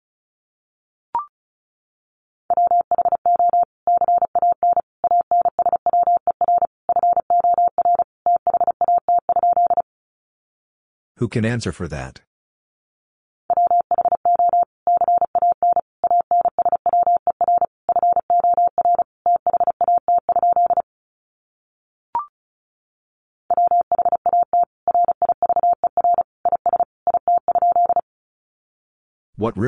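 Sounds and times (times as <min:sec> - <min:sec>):
Morse code tones at 35 words per minute: 0:02.5 - 0:09.8, 0:13.5 - 0:20.8, 0:23.5 - 0:28.0
speech: 0:11.2 - 0:12.3, 0:29.4 - 0:29.6.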